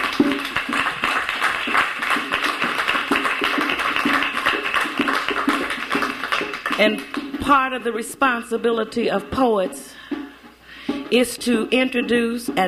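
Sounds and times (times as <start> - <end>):
crowd applause: 0.0 - 7.3
speech: 6.8 - 10.0, 11.1 - 12.6.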